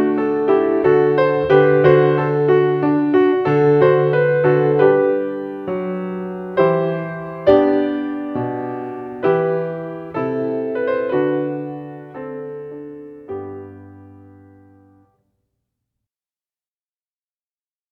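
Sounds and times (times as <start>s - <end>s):
piano piece played by a pianist at a wedding: 0.0s - 15.2s.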